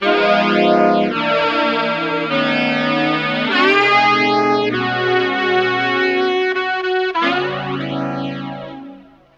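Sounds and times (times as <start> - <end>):
saxophone: 0.0 - 9.3.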